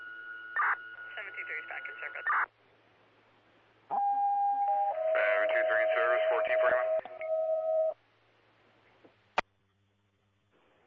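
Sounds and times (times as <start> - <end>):
radio dispatch cancellation tones: 0.6 - 2.5, 3.9 - 8.0
speech: 1.2 - 2.6.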